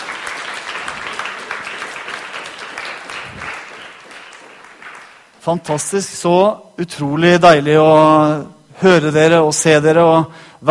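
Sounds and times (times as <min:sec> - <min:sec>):
audience applause: 0:00.0 - 0:05.4
speech: 0:05.4 - 0:10.7.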